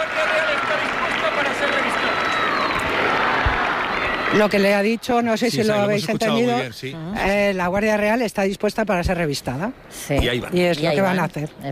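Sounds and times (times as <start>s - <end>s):
crowd shouting viva: 0.0s - 4.6s
audience applause: 0.0s - 5.5s
speech: 4.3s - 11.7s.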